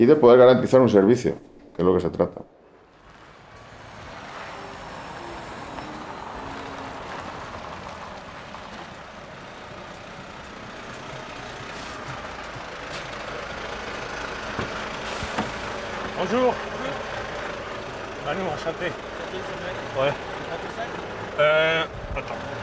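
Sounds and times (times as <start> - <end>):
speech: 0.0 - 2.5
truck engine idling: 0.0 - 22.6
truck cab door opening: 1.2 - 2.5.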